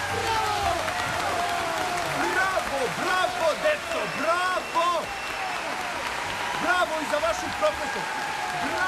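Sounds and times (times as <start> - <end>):
audience clapping: 0.0 - 8.8.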